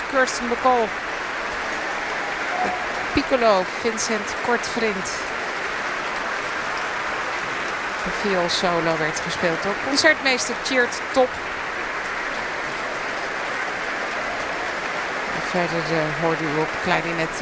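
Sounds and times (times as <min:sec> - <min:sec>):
concert audience applause: 0:00.0 - 0:17.3
speech: 0:00.1 - 0:01.1, 0:02.6 - 0:05.4, 0:08.1 - 0:11.5, 0:15.5 - 0:17.3.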